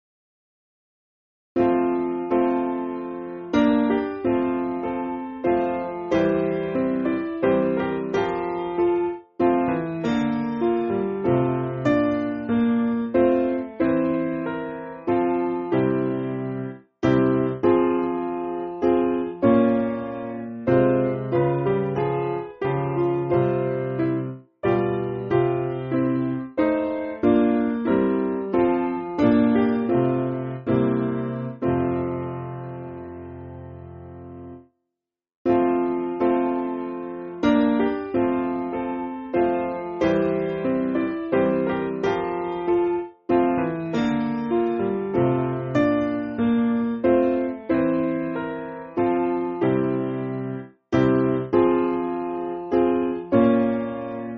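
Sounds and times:
piano backing music for churches: 1.6 - 34.7, 35.5 - 54.3.

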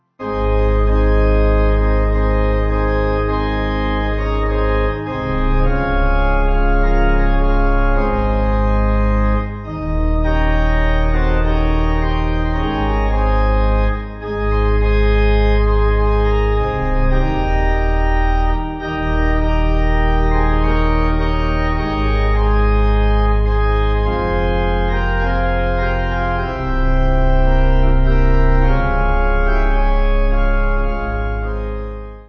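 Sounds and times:
pipe organ backing: 0.0 - 32.2.

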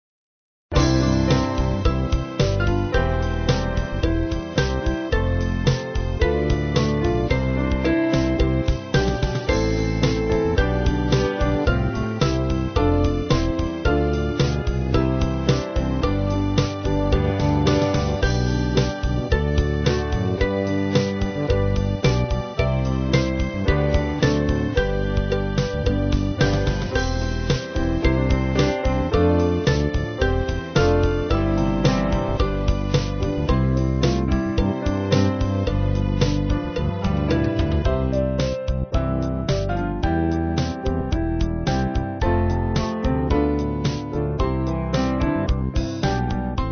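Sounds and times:
band playing: 0.8 - 46.6.

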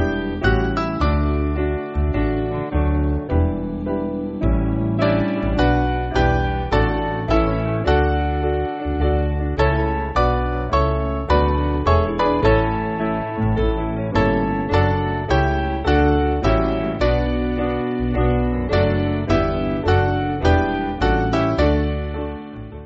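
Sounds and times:
piano backing music for churches: 0.0 - 22.8.

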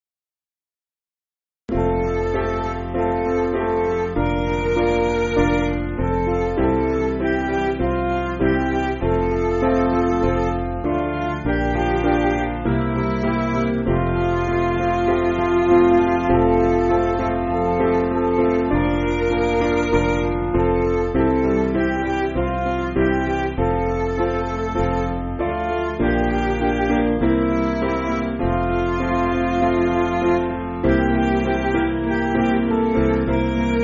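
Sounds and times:
MIDI music: 1.7 - 33.8.

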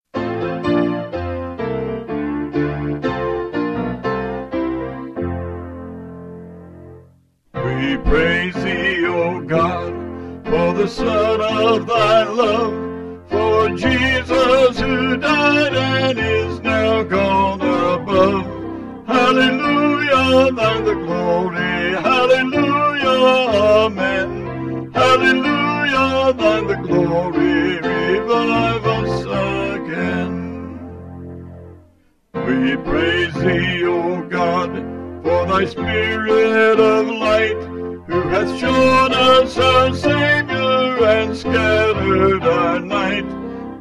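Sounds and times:
piano: 0.0 - 43.7
vocals: 7.6 - 31.0, 32.4 - 43.7.

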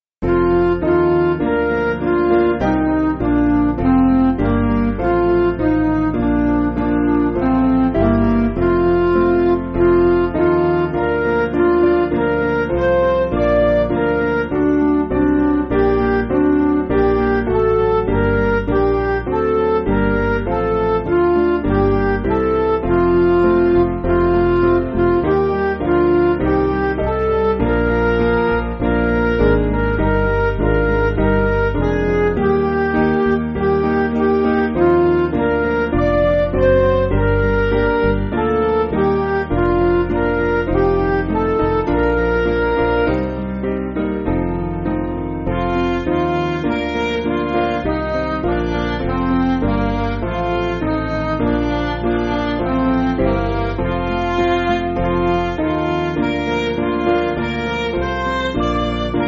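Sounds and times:
MIDI backing music: 0.2 - 59.2.

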